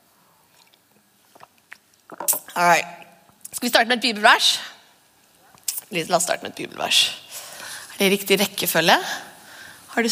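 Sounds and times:
person drinking water: 0:00.5 - 0:02.6
speech: 0:02.6 - 0:03.0, 0:03.6 - 0:04.7, 0:05.9 - 0:07.2, 0:08.0 - 0:09.3.

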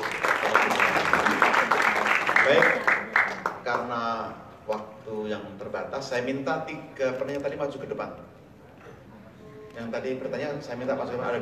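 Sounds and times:
audience applause: 0:00.0 - 0:03.6
speech: 0:03.7 - 0:08.4, 0:09.8 - 0:11.3.

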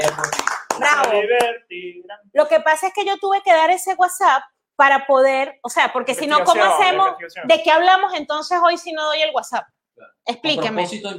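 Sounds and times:
hands clapping in applause: 0:00.0 - 0:01.6
speech: 0:01.0 - 0:11.1.

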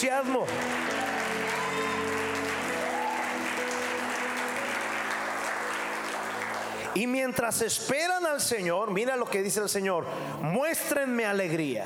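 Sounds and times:
speech: 0:00.0 - 0:00.9, 0:06.9 - 0:11.8
audience applause: 0:00.0 - 0:07.4.

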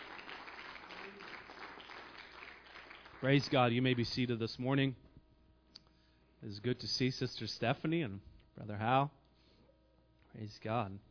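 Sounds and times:
audience clapping hands: 0:00.0 - 0:04.0
speech: 0:03.2 - 0:05.0, 0:06.4 - 0:09.2, 0:10.3 - 0:11.0.

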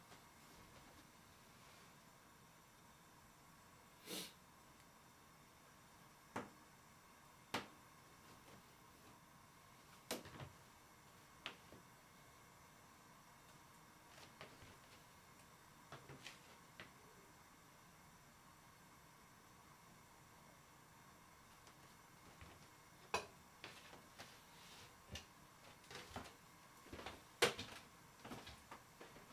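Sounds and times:
quiet hum with faint held tone: 0:00.0 - 0:29.3
dishes or utensils clinking and knocking: 0:23.1 - 0:23.4.

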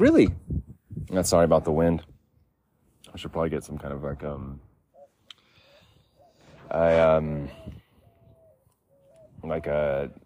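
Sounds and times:
speech: 0:00.0 - 0:00.5, 0:01.1 - 0:02.1, 0:03.2 - 0:04.7, 0:06.7 - 0:07.8, 0:09.4 - 0:10.2
blackbirds squealing, screeching and squawking: 0:04.8 - 0:10.2.

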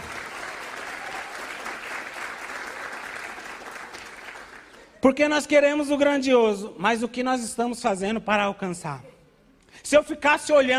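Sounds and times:
audience applause: 0:00.0 - 0:04.9
speech: 0:05.0 - 0:09.1, 0:09.8 - 0:10.7.

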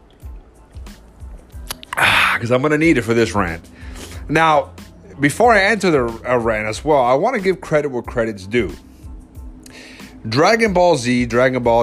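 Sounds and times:
person sipping Bang energy drink: 0:01.6 - 0:02.4
speech: 0:02.4 - 0:08.9, 0:10.2 - 0:11.8.

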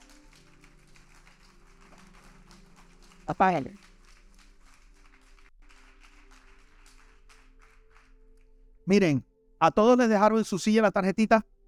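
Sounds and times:
large crowd applauding: 0:00.0 - 0:08.6
speech: 0:03.3 - 0:03.8, 0:08.9 - 0:11.5.

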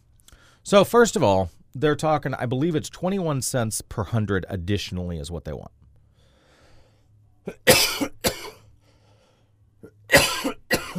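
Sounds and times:
speech: 0:00.6 - 0:05.8, 0:07.4 - 0:07.9
person coughing from choking on water: 0:07.4 - 0:08.7, 0:09.8 - 0:10.9.

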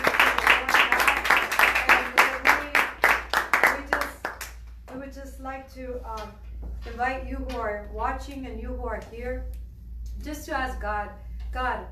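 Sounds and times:
audience clapping rhythmically: 0:00.0 - 0:04.8
speech: 0:05.8 - 0:09.6, 0:10.2 - 0:11.8.

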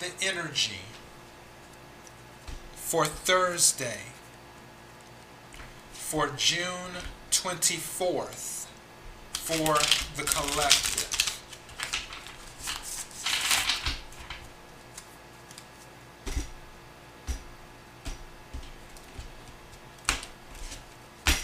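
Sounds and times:
speech: 0:00.2 - 0:01.0, 0:02.9 - 0:04.2, 0:06.1 - 0:08.5, 0:09.5 - 0:11.0
tarot cards shuffling: 0:09.4 - 0:16.5, 0:18.6 - 0:21.4.

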